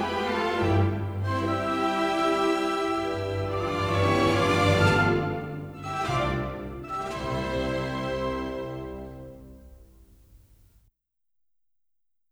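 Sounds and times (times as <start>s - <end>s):
mazurka: 0.0s - 9.4s.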